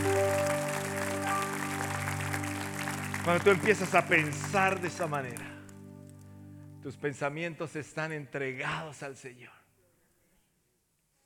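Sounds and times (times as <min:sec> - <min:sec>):
audience applause: 0:00.0 - 0:05.9
speech: 0:03.2 - 0:05.5, 0:06.8 - 0:09.6.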